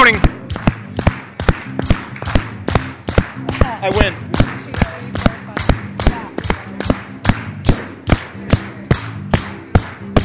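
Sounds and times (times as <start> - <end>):
crowd clapping in unison on every beat: 0.0 - 7.7
quiet music with a low sustained tone: 0.0 - 10.2
speech: 0.1 - 0.3, 3.8 - 4.2.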